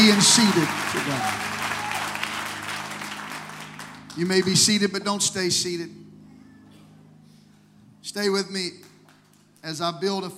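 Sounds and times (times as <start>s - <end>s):
speech: 0.0s - 1.6s, 4.2s - 6.0s, 8.0s - 8.9s, 9.6s - 10.3s
audience clapping hands: 0.0s - 4.5s.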